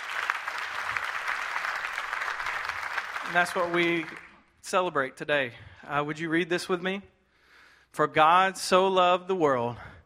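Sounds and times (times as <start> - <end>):
audience applause: 0.0 - 4.4
speech: 3.3 - 7.1, 7.9 - 9.9.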